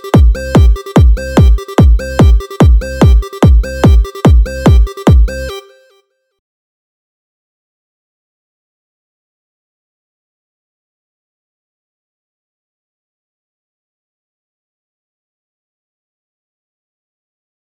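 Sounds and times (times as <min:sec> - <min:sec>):
car audio music: 0:00.0 - 0:05.8.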